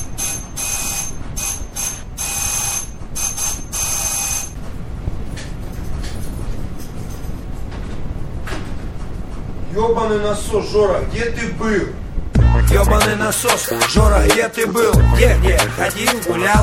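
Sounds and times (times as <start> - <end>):
doorbell ringing: 0.0 - 4.6
speech: 9.8 - 12.0, 12.7 - 16.6.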